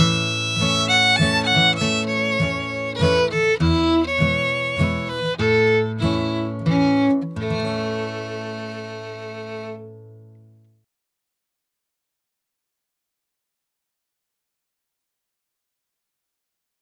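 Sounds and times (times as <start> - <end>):
waltz music: 0.0 - 10.0.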